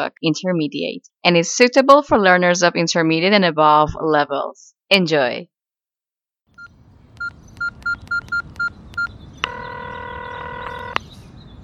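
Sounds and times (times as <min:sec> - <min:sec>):
speech: 0:00.0 - 0:05.5
steady telephone buzzing tone: 0:06.6 - 0:11.0
telephone keypad dialing beeps: 0:06.6 - 0:11.0
low hum: 0:06.6 - 0:11.6.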